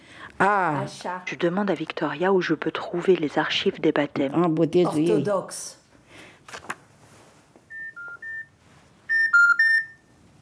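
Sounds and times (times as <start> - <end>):
speech: 0.4 - 5.8
telephone picked up and dialed: 7.7 - 8.4.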